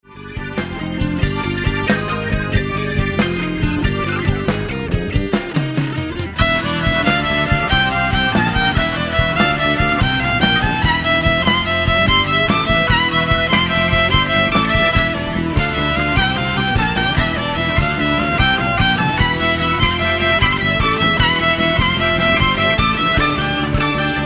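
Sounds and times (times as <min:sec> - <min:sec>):
epic music: 0:00.4 - 0:24.2.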